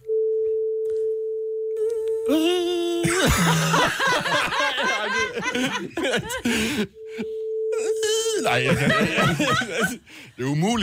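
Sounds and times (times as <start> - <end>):
voice imitating a telephone dial tone: 0.4 - 3.1, 7.0 - 8.6
laughter: 3.1 - 6.9, 8.4 - 10.1
speech: 3.2 - 7.4, 8.4 - 10.8.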